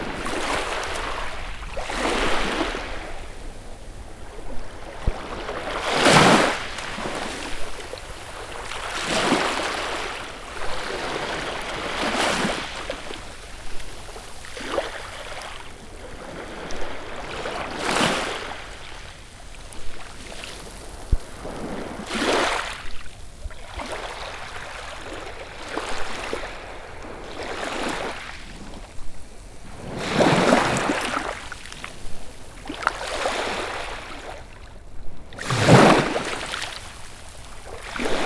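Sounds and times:
calm morning waves on a beach: 0.0 - 38.2.

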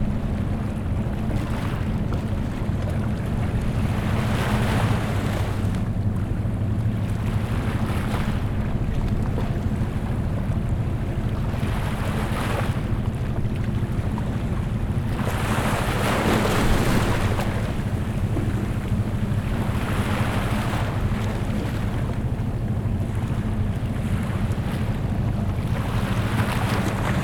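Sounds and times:
distant ship engine: 0.0 - 27.2
sea ambience: 0.0 - 27.2.

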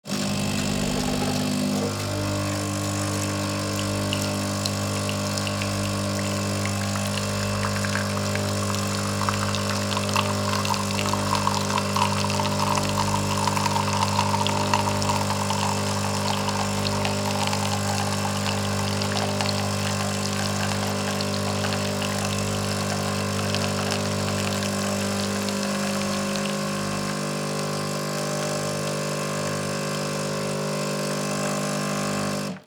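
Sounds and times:
coffee machine brewing milk: 0.0 - 32.6.

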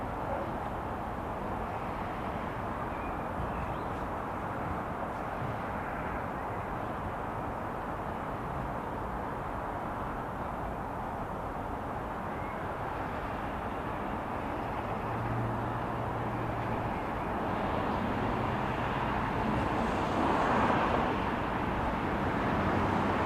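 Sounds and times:
suburban light traffic: 0.0 - 23.2
suburban street ambience: 0.0 - 23.2.

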